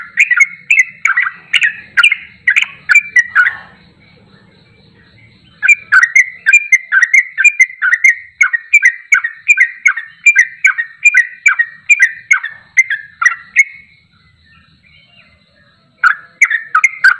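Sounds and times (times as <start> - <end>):
champion bulbul singing in tembakan style: 0.0 - 17.1.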